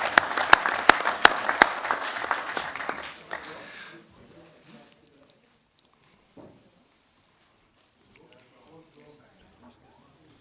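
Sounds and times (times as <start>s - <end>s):
audience applause: 0.0s - 3.8s.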